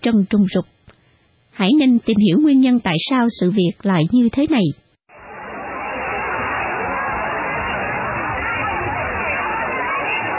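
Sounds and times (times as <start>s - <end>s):
speech: 0.0s - 0.8s, 1.6s - 4.8s
crowd hubbub as people climb the spiked fence of Ho Tay water park: 5.1s - 10.3s.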